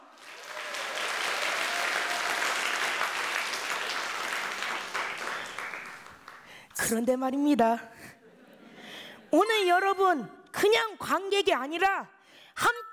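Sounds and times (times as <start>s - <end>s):
audience applause: 0.1s - 6.6s
speech: 6.9s - 8.0s, 9.3s - 12.8s.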